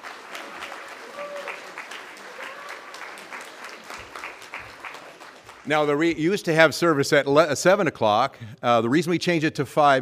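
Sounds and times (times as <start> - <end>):
room full of people clapping: 0.0 - 6.3
speech: 5.6 - 10.0.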